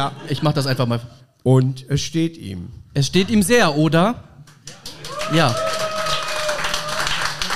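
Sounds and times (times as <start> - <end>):
speech: 0.0 - 5.8
applause: 4.5 - 7.5.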